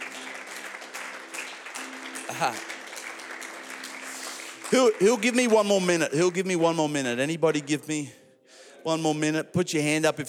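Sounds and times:
audience hand clapping: 0:00.0 - 0:07.7
speech: 0:02.3 - 0:02.7, 0:04.7 - 0:08.2, 0:08.8 - 0:10.2.

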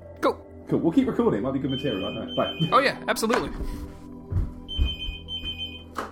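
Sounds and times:
speech: 0:00.2 - 0:04.1
phone ringing: 0:01.7 - 0:02.8, 0:04.7 - 0:05.9.

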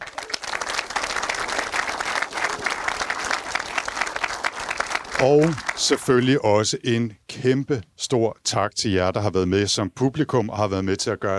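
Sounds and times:
audience applause: 0:00.0 - 0:06.3
speech: 0:05.2 - 0:11.3.

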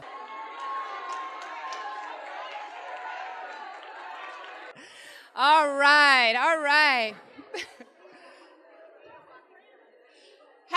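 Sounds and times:
many voices shouting and cheering: 0:00.0 - 0:04.8, 0:05.4 - 0:07.2
speech: 0:05.4 - 0:07.7.

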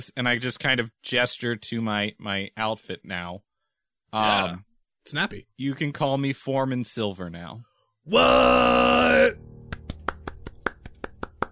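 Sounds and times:
speech: 0:00.0 - 0:03.5, 0:04.1 - 0:09.5
person clapping: 0:09.7 - 0:11.5.

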